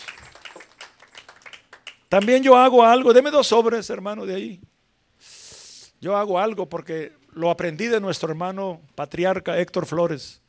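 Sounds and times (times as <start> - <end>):
group applauding: 0.0 - 2.7
speech: 2.1 - 4.7, 6.0 - 10.4.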